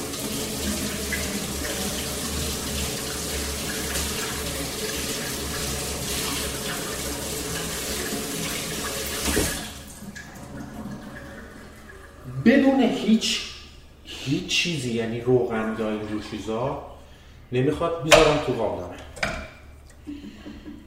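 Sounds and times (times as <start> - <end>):
washing raw meat under running water: 0.0 - 13.2
speech: 12.5 - 13.5, 14.3 - 16.9, 17.5 - 19.1.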